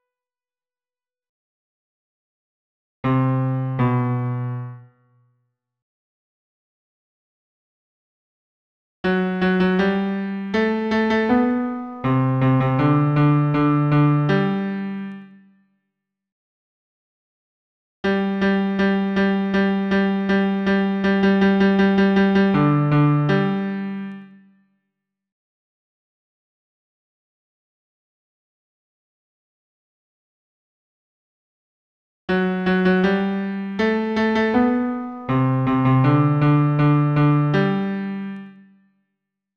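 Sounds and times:
solo piano bass line: 0:03.0 - 0:04.9, 0:09.1 - 0:15.2, 0:18.1 - 0:24.2, 0:32.3 - 0:38.4.

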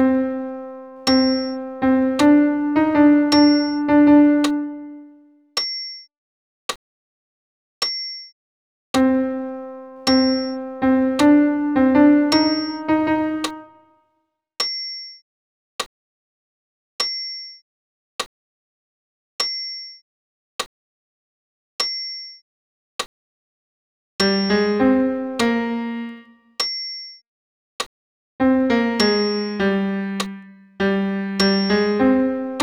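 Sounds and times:
solo piano Credo piece: 0:00.0 - 0:05.2, 0:09.0 - 0:13.9, 0:24.2 - 0:26.4, 0:28.4 - 0:32.6.

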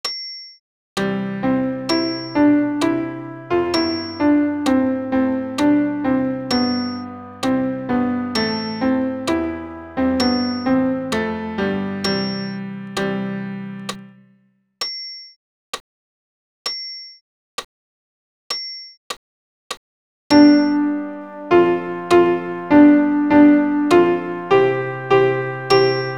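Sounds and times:
alto piano accompaniment for a Credo: 0:01.0 - 0:14.5, 0:20.3 - 0:26.1.

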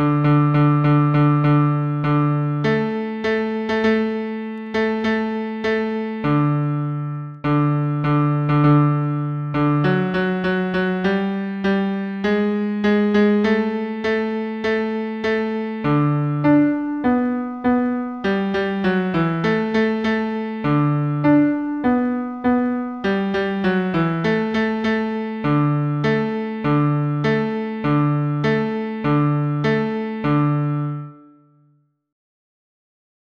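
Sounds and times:
solo piano piece: 0:00.0 - 0:31.6.

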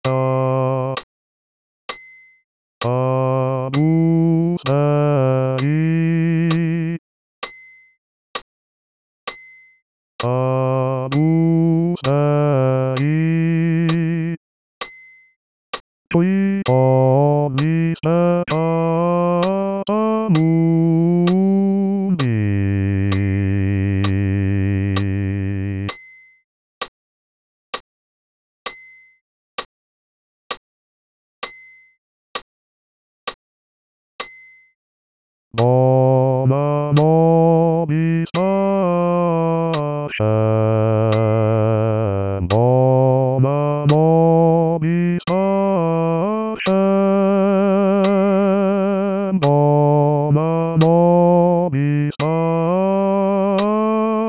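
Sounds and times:
solo bass voice singing: 0:00.1 - 0:01.0, 0:02.8 - 0:07.0, 0:10.2 - 0:14.4, 0:16.1 - 0:25.9, 0:35.6 - 0:54.2.

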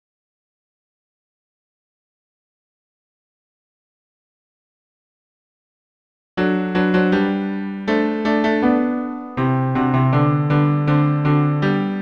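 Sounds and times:
piano bass accompaniment: 0:06.4 - 0:11.9.

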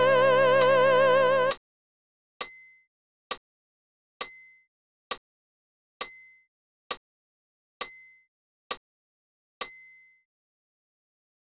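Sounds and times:
soprano voice singing with accompaniment: 0:00.0 - 0:01.5.

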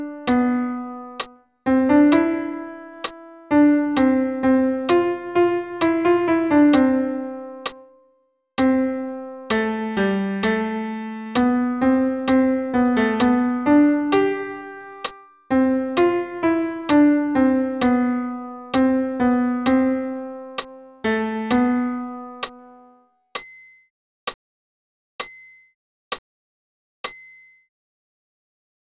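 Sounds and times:
solo piano for tenor voice: 0:00.0 - 0:23.0.

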